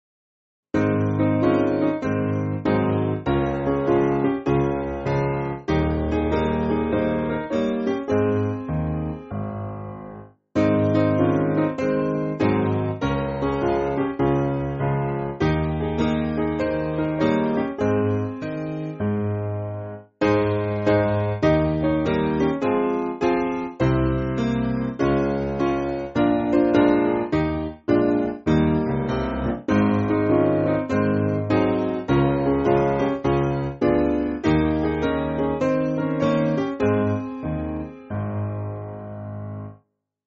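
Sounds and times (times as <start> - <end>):
piano backing music for churches: 0.8 - 39.8.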